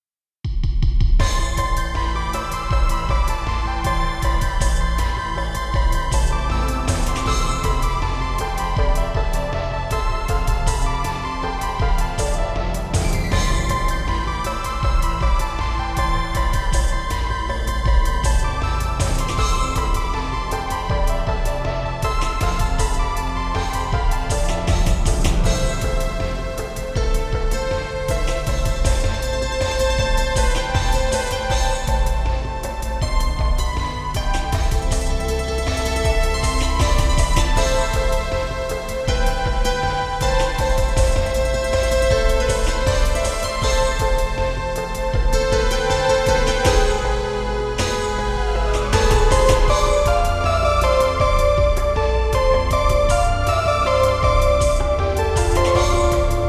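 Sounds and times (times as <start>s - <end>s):
ambient music: 1.2s - 56.4s.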